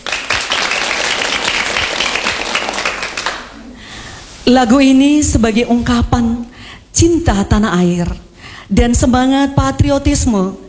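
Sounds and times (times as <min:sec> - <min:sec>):
applause: 0:00.0 - 0:03.6
speech: 0:04.5 - 0:10.6.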